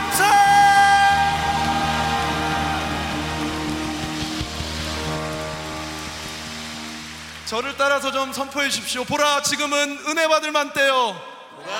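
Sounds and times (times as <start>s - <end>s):
audience applause: 0.0s - 8.8s
speech: 7.5s - 11.7s.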